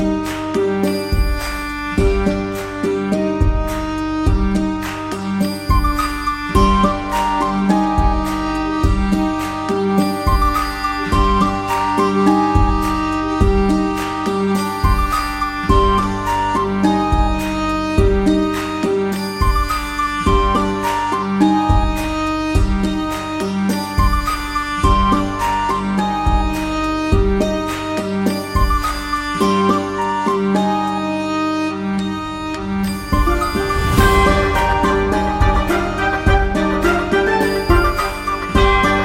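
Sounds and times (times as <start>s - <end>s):
medieval bardcore version of a song: 0.0s - 39.0s.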